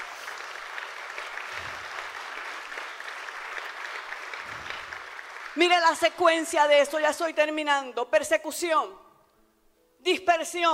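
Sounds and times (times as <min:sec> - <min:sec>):
audience applause: 0:00.0 - 0:05.9
speech: 0:05.6 - 0:09.0, 0:10.0 - 0:10.7.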